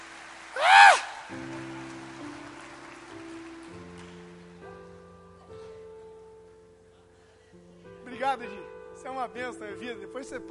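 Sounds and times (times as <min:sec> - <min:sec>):
audience applause: 0:00.0 - 0:04.6
sustained keyboard chords: 0:01.2 - 0:10.4
speech: 0:08.3 - 0:10.4.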